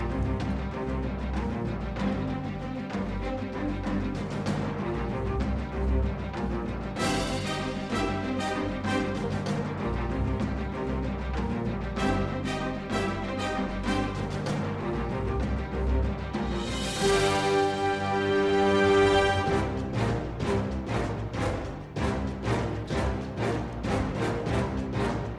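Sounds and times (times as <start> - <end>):
optimistic music: 0.0 - 25.3.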